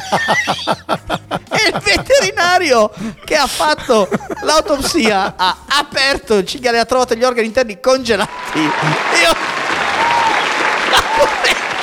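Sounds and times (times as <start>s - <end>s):
laughter: 0.0s - 5.8s, 8.3s - 11.8s
speech: 0.1s - 1.0s, 1.7s - 9.6s
audience applause: 8.3s - 11.8s.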